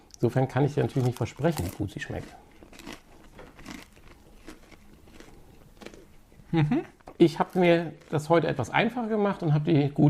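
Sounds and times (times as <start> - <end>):
speech: 0.2 - 2.5, 6.5 - 10.0
crunchy bites into a crispy baked pizza burger: 0.8 - 6.1.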